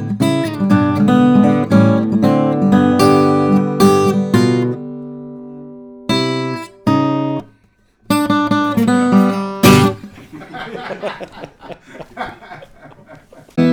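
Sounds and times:
Gibson L-00 steel string flattop guitar: 0.0 - 10.1
laughter: 10.0 - 13.7.

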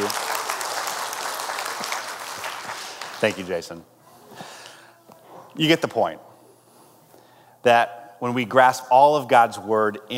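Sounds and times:
audience applause: 0.0 - 3.6
speech: 3.2 - 4.0, 5.6 - 6.3, 7.6 - 10.1.

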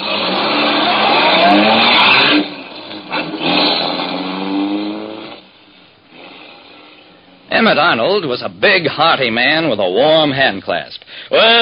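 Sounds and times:
tire squeal as the car pulls away: 0.0 - 5.5
car engine starting and revving: 0.0 - 7.5
speech: 7.6 - 11.6.

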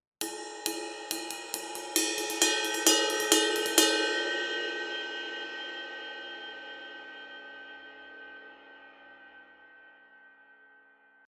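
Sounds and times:
ride cymbal: 0.2 - 5.2.

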